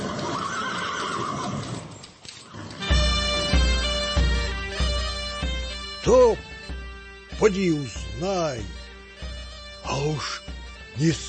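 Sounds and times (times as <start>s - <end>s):
horse neighing: 0.0s - 3.1s
horse hoofbeats: 0.0s - 11.2s
speech: 7.4s - 8.8s, 10.0s - 11.2s.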